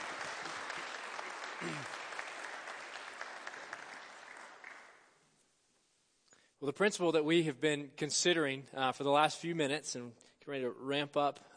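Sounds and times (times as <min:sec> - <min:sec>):
audience applauding: 0:00.0 - 0:05.2
brief vocal sound: 0:01.6 - 0:01.9
speech: 0:01.6 - 0:02.0, 0:06.6 - 0:11.5.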